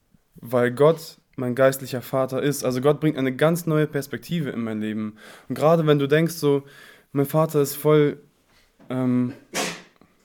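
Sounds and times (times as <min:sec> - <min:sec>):
speech: 0:00.4 - 0:08.3, 0:08.9 - 0:09.5
sneeze: 0:09.5 - 0:10.0.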